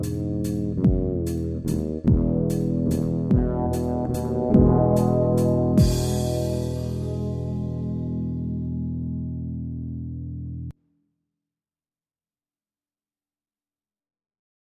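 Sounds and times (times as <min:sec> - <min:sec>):
FL bass: 0:00.0 - 0:10.7.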